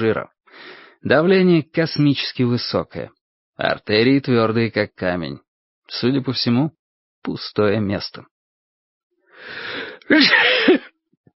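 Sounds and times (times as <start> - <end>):
speech: 0.0 - 8.3, 9.4 - 10.9
police chief of Margrave sneezing: 10.0 - 10.9.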